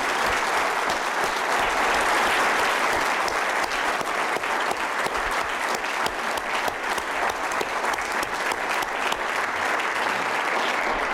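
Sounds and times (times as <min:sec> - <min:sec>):
audience applause: 0:00.0 - 0:11.1.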